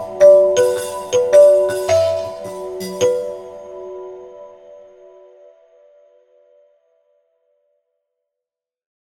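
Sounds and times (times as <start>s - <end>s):
glockenspiel box: 0.0s - 4.8s.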